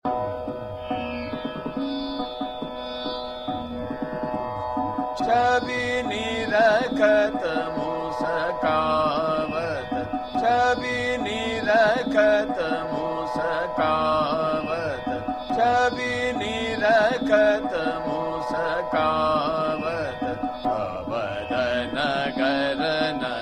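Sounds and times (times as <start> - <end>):
chota khyal singing in fast ektal: 0.1 - 23.4.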